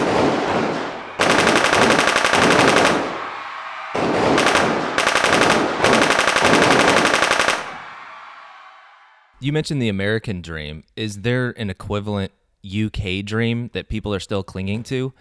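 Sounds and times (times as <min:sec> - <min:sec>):
automatic gunfire returning fire: 0:00.0 - 0:07.8
speech: 0:09.5 - 0:15.1.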